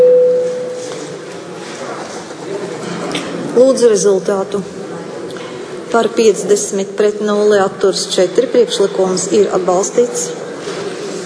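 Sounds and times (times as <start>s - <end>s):
electronic voting signal in a parliament session: 0.0s - 0.8s
speech: 3.6s - 4.8s, 6.0s - 10.5s.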